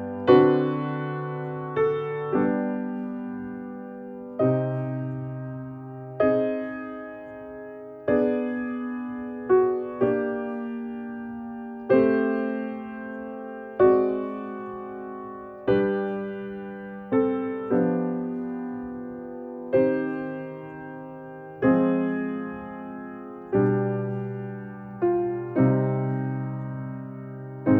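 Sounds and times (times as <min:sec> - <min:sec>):
piano playing an extended sequence of chords as exercises: 0:00.0 - 0:27.7.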